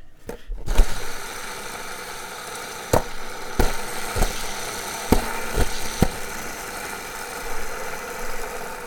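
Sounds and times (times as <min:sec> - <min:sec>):
Slime Balls skateboard wheels spinning on a Vision Psycho Stick deck: 0:00.0 - 0:08.8.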